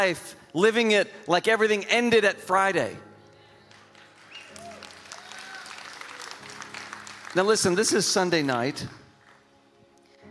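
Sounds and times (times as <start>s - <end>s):
speech: 0.0s - 3.1s, 7.4s - 9.0s
golf clap from audience: 3.7s - 9.5s.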